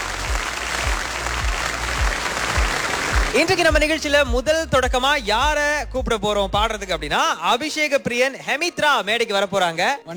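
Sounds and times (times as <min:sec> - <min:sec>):
audience applause opening a stage show of artists' performances: 0:00.0 - 0:03.8
speech: 0:03.4 - 0:10.1.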